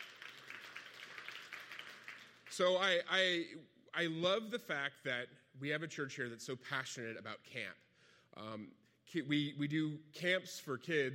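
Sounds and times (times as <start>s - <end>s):
audience clapping: 0.0s - 3.0s
speech: 2.6s - 11.1s.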